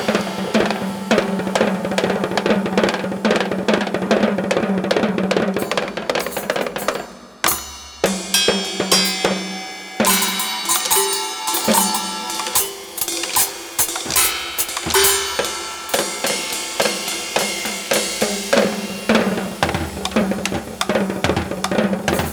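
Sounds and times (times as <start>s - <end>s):
drum solo: 0.0s - 22.3s.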